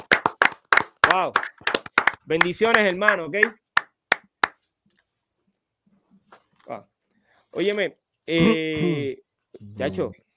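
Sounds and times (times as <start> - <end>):
applause: 0.0 - 4.6
speech: 1.1 - 1.6, 2.3 - 3.6, 6.7 - 6.9, 7.6 - 10.2.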